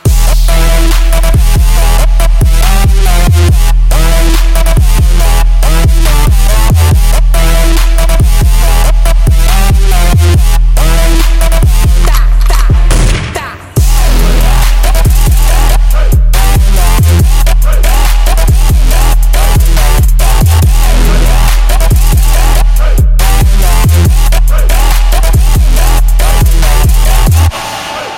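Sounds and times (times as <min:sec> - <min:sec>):
dubstep music: 0:00.0 - 0:28.1.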